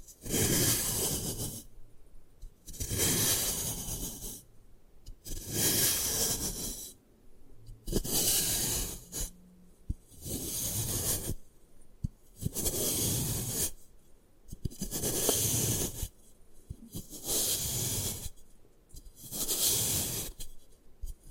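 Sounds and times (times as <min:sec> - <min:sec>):
gym chalk crushed and rubbed: 0:00.0 - 0:01.7, 0:02.6 - 0:04.4, 0:05.2 - 0:07.0, 0:07.9 - 0:09.3, 0:09.9 - 0:11.4, 0:12.4 - 0:13.8, 0:14.6 - 0:18.4, 0:19.1 - 0:21.2.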